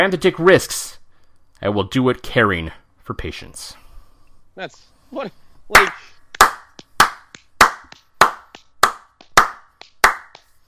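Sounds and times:
speech: 0:00.0 - 0:01.0, 0:01.6 - 0:03.8, 0:04.6 - 0:06.1
hand clapping: 0:05.7 - 0:10.6.

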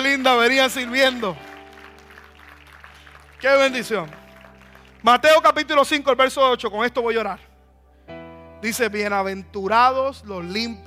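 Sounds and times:
audience applause: 0:00.0 - 0:05.2
speech: 0:00.1 - 0:01.5, 0:03.4 - 0:04.2, 0:05.0 - 0:07.5, 0:08.6 - 0:10.8.

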